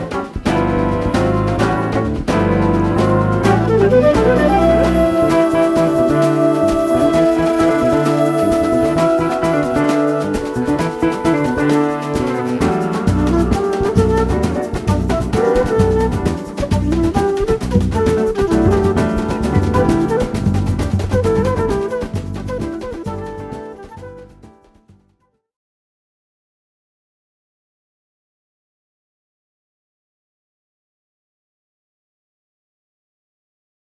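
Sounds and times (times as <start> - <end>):
batucada samba percussion with jazz: 0.0 - 25.1.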